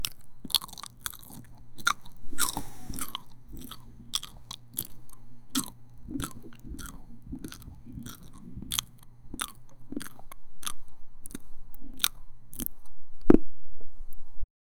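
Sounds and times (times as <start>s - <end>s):
restaurant ambience: 0.0s - 10.1s
person slowly chewing french fries in a restaurant: 0.0s - 12.9s.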